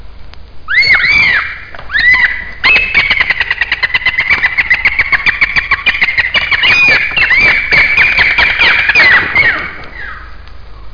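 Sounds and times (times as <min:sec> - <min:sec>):
alpine swift calling: 0:00.7 - 0:10.9.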